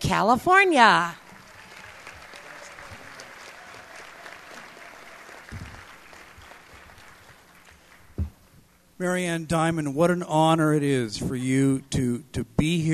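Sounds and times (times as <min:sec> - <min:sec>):
speech: 0:00.1 - 0:01.2, 0:09.0 - 0:12.9
audience at an ACB convention applauding: 0:01.2 - 0:08.2.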